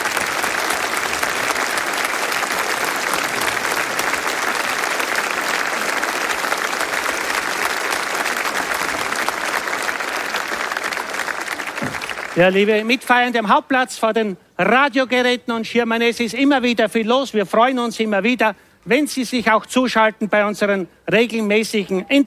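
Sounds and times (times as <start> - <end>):
audience applause: 0.0 - 12.6
speech: 12.4 - 22.2.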